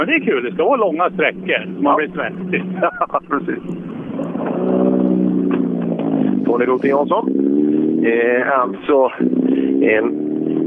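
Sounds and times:
speech: 0.0s - 4.7s, 6.5s - 7.4s, 8.0s - 10.6s
car engine driving past: 0.0s - 8.2s
laughter: 2.2s - 3.8s.

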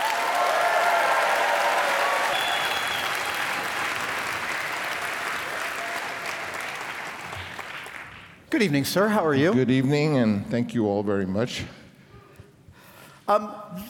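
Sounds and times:
audience applause welcoming Francis Ford Coppola at a San Francisco event: 0.0s - 8.4s
speech: 8.5s - 11.8s, 13.3s - 13.8s.

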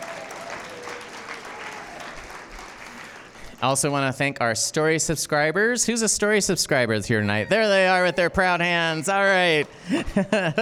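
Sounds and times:
audience applause: 0.0s - 3.6s
speech: 3.6s - 10.5s
laughter: 8.9s - 10.5s.

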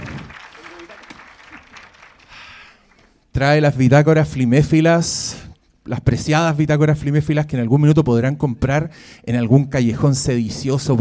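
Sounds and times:
audience applause: 0.0s - 3.2s
speech: 3.4s - 10.9s.

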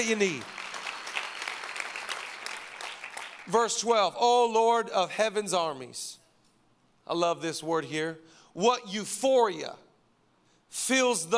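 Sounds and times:
speech: 0.0s - 0.6s, 3.5s - 6.2s, 7.1s - 9.8s, 10.7s - 11.3s
audience clapping: 0.0s - 3.6s.

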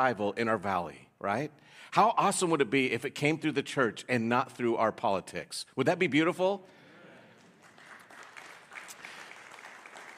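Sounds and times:
speech: 0.0s - 6.8s
weak audience clapping: 7.2s - 10.1s.

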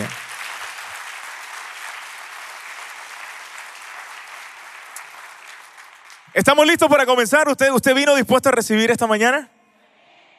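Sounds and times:
audience applause: 0.0s - 6.4s
speech: 6.3s - 9.6s.

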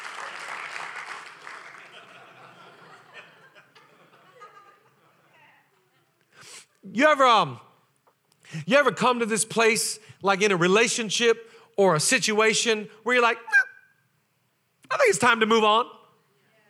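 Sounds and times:
audience applause: 0.0s - 3.1s
laughter: 1.7s - 6.2s
speech: 6.8s - 7.7s, 8.5s - 13.6s, 15.1s - 16.0s.

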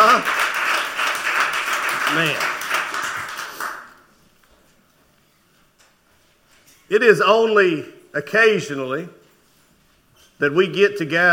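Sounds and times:
audience clapping: 0.0s - 4.2s
speech: 2.1s - 2.5s, 6.9s - 9.2s, 10.4s - 11.3s.

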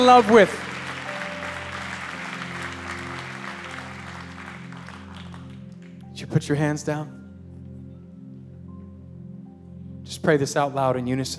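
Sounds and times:
speech: 0.0s - 0.7s, 6.3s - 7.2s, 10.2s - 11.3s
audience clapping: 0.0s - 6.2s
sustained low organ or keyboard chord: 0.0s - 11.3s.

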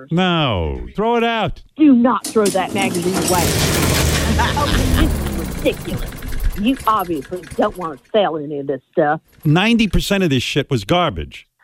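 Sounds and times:
speech: 0.0s - 11.5s
wood chipper: 2.5s - 7.7s.

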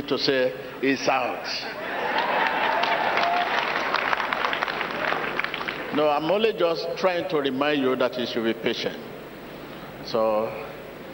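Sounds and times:
speech: 0.1s - 1.9s, 5.9s - 9.1s, 10.0s - 10.7s
audience clapping: 2.0s - 6.0s.

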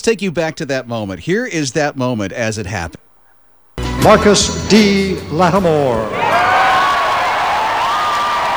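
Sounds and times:
speech: 0.0s - 3.0s, 4.0s - 6.5s
large crowd cheering: 6.0s - 8.5s
shouts and whoops: 6.1s - 8.5s.

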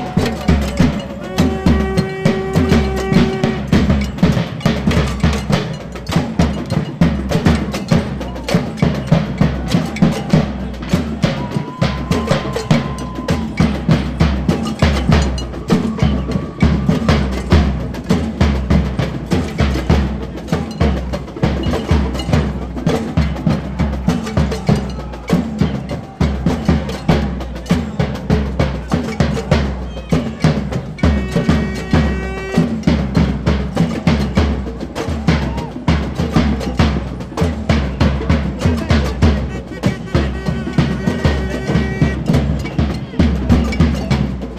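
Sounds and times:
constant crowd murmur: 0.0s - 44.5s
street percussion drums at Quebec student strike protest in Montreal: 0.0s - 44.5s.

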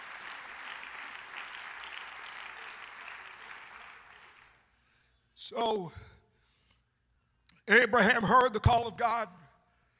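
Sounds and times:
audience clapping hands: 0.0s - 4.8s
speech: 5.5s - 6.1s, 7.7s - 9.4s.

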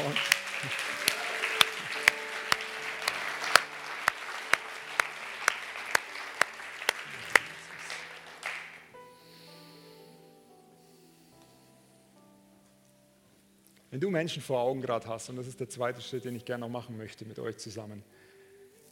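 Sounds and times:
audience applause: 0.0s - 9.0s
speech: 14.0s - 18.3s.

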